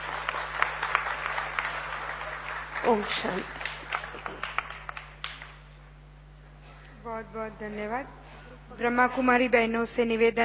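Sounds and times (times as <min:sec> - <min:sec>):
audience applauding to welcome an honored guest at a spiritual gathering: 0:00.0 - 0:05.7
speech: 0:02.8 - 0:03.6, 0:07.2 - 0:10.4.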